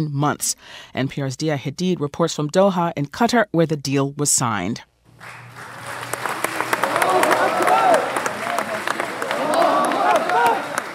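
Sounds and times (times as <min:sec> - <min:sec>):
speech: 0:00.0 - 0:05.4
crowd cheering at signing ceremony: 0:05.2 - 0:10.9.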